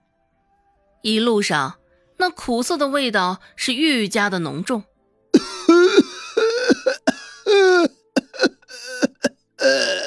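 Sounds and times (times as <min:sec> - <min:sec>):
speech: 0:01.0 - 0:04.9
elderly man coughing: 0:05.4 - 0:10.0.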